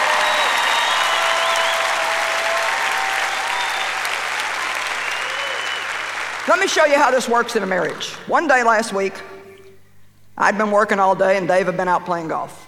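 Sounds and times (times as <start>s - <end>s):
audience applause: 0.0s - 7.1s
speech: 6.5s - 9.3s, 10.4s - 12.6s.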